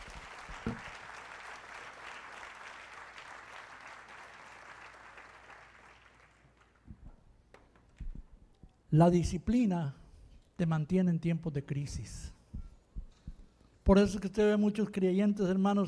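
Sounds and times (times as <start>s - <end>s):
audience applauding: 0.0s - 6.8s
speech: 9.0s - 10.0s, 10.6s - 12.4s, 13.9s - 15.8s.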